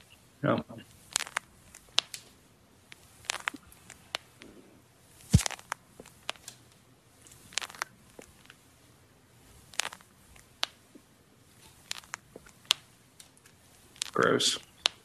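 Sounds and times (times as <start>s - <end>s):
speech: 0.4s - 0.9s, 14.2s - 14.7s
knee joints crunching and clicking: 0.8s - 2.3s, 2.9s - 4.6s, 5.2s - 6.6s, 7.2s - 8.6s, 9.6s - 11.0s, 11.6s - 15.0s.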